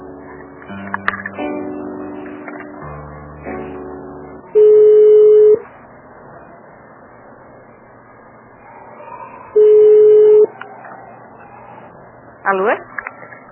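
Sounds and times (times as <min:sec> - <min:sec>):
telephone busy tones while transferring a call: 0:04.6 - 0:05.6, 0:09.6 - 0:10.5.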